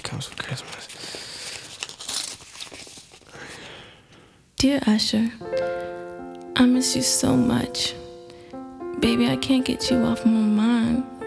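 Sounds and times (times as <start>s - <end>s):
Christmas card envelope torn open: 0.0s - 3.8s
speech: 0.1s - 0.7s, 4.6s - 5.8s, 6.6s - 8.0s, 9.0s - 11.2s.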